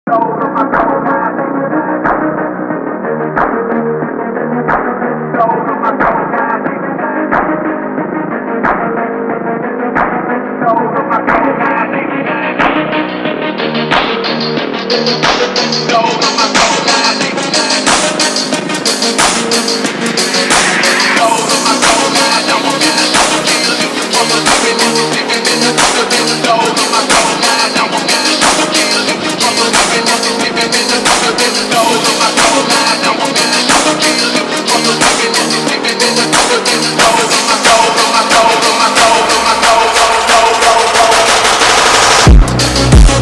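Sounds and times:
phonk remix: 0:00.1 - 0:43.2.

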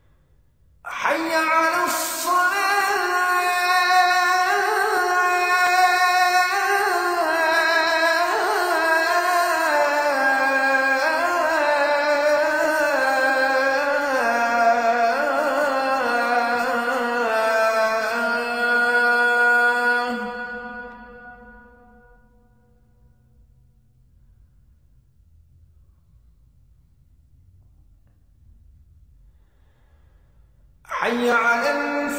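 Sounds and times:
Azan call to prayer: 0:00.9 - 0:22.2, 0:30.9 - 0:32.1.

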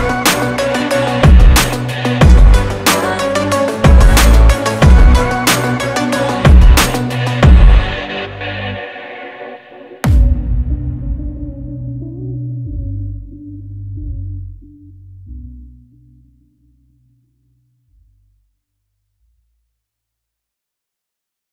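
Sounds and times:
motivational choir: 0:00.0 - 0:10.0
hard uplifting rap beat: 0:00.0 - 0:13.6.

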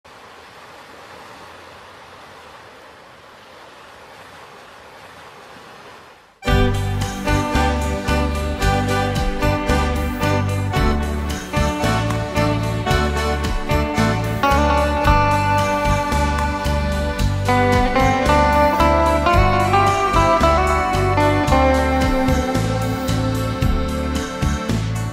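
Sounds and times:
instrumental music: 0:06.4 - 0:25.1.

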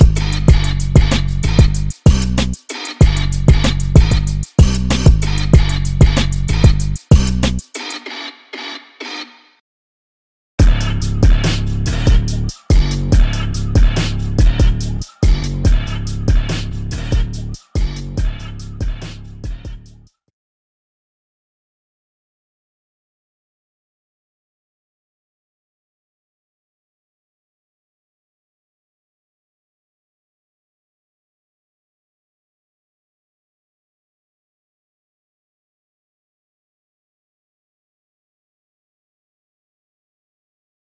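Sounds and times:
instrumental music: 0:00.0 - 0:09.5, 0:10.6 - 0:19.9.

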